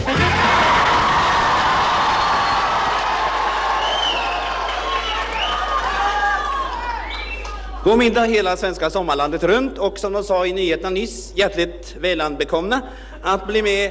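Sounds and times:
crowd of young people cheering and shouting: 0.0 - 7.8
speech: 7.8 - 13.8.

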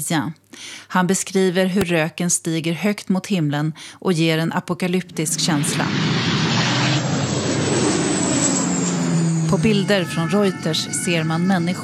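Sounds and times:
speech: 0.0 - 6.8, 9.5 - 11.8
water-bombing aircraft flying overhead: 5.1 - 11.8.

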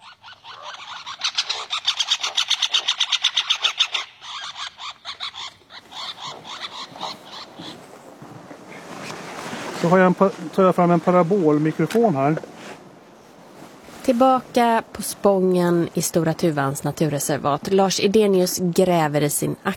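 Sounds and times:
two birds' harsh aggression calls on a tree trunk: 0.0 - 8.1
speech: 9.8 - 12.5, 14.1 - 19.7.

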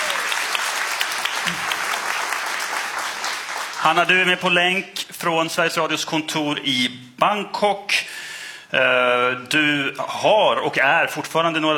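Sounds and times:
audience applause: 0.0 - 4.3
speech: 3.8 - 8.1, 8.7 - 11.7.

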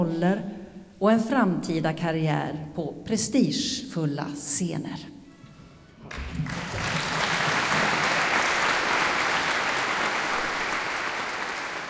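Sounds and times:
speech: 0.0 - 5.2
applause at a scholarship award ceremony: 6.0 - 11.8.

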